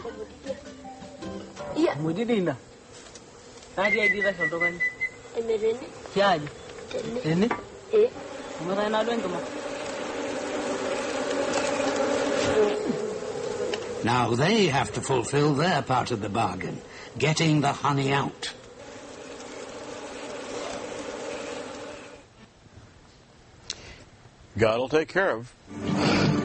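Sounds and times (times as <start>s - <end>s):
bees buzzing around a beehive: 0.0s - 22.3s
speech: 1.8s - 2.7s, 3.8s - 9.6s, 12.6s - 13.0s, 14.0s - 18.6s, 24.6s - 26.4s.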